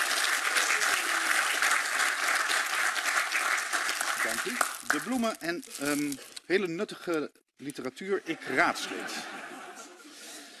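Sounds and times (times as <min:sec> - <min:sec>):
audience applause at a council swearing-in: 0:00.0 - 0:05.4
speech: 0:04.2 - 0:09.4
laughter: 0:08.3 - 0:10.5.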